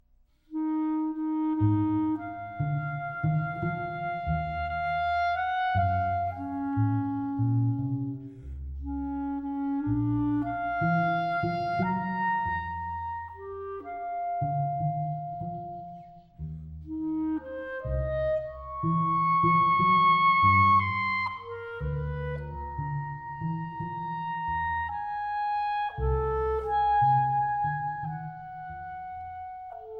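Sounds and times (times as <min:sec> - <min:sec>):
double bass playing very slow and hesitant: 0:00.0 - 0:29.9
clarinet playing very slow and hesitant: 0:00.4 - 0:29.9.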